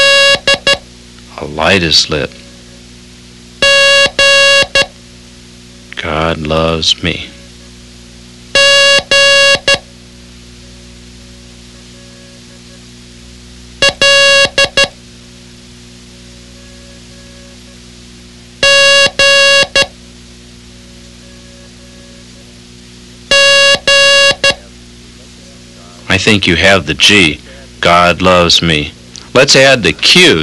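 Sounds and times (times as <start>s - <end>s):
Morse code beeps: 0.0s - 0.8s, 3.6s - 4.9s, 8.6s - 9.9s, 13.8s - 15.0s, 18.6s - 19.9s, 23.3s - 24.6s
speech: 1.4s - 2.4s, 6.4s - 7.3s, 26.2s - 30.4s.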